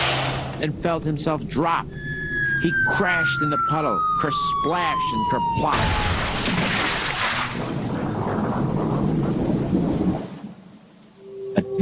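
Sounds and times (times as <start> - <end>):
thunder rumbling: 0.0 - 10.9
speech: 0.6 - 2.0, 2.6 - 6.6
heavy pounding rain in a thunderstorm: 5.4 - 11.0.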